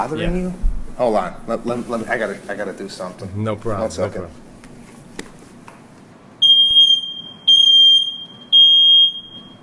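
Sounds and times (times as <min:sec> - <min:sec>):
speech: 0:00.0 - 0:04.4
smoke detector beeping: 0:06.4 - 0:09.6.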